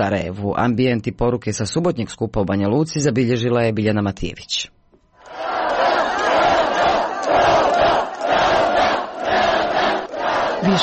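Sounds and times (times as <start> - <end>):
speech: 0.0 - 4.8, 10.6 - 10.8
large crowd chanting at a protest rally: 5.2 - 10.8.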